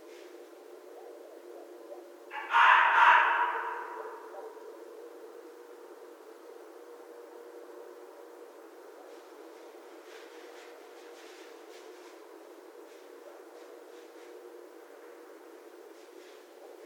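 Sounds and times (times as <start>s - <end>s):
red fox calling: 0.9s - 5.1s.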